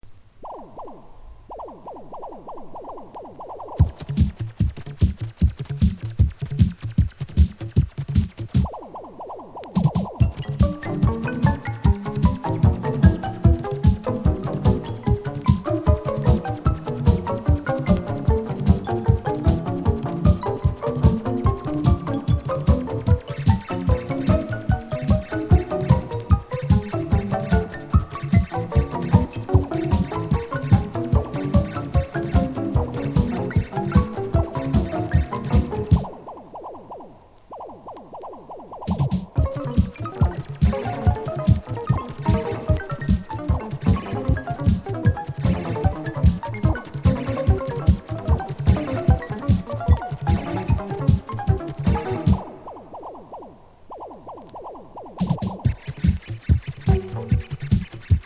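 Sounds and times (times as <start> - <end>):
synthesiser: 0.0 - 58.2.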